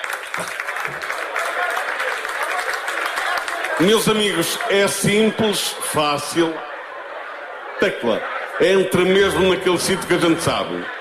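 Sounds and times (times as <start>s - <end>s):
audience applause: 0.0s - 5.4s
speech: 0.4s - 1.1s, 3.8s - 6.7s, 7.8s - 10.9s.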